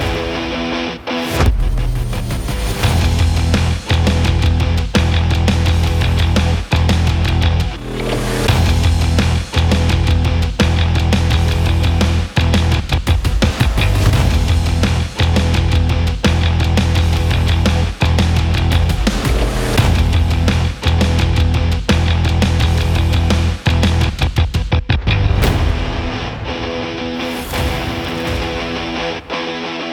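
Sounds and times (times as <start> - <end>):
sports action rock trailer music: 0.0 - 29.9.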